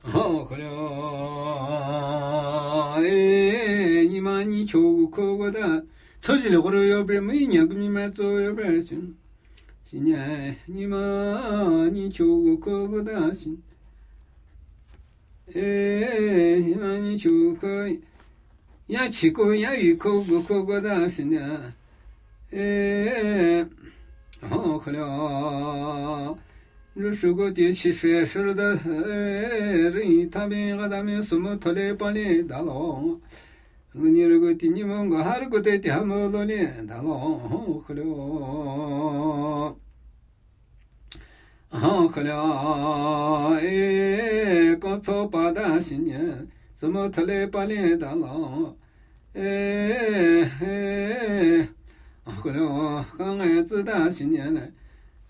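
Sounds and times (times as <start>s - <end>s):
Namuyi Tibetan ritual chanting: 0.0s - 9.2s, 9.8s - 13.7s, 15.4s - 18.1s, 18.8s - 33.3s, 33.9s - 39.8s, 41.7s - 55.2s.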